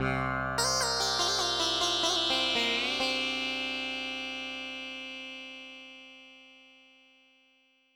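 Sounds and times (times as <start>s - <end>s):
sitar: 0.0s - 7.6s.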